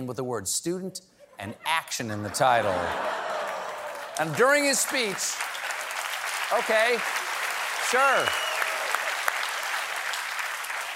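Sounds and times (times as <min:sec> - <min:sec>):
speech: 0:00.0 - 0:03.2, 0:04.2 - 0:05.6, 0:06.5 - 0:07.2, 0:07.9 - 0:08.4
laughter: 0:01.2 - 0:04.4
audience applause: 0:02.4 - 0:10.9.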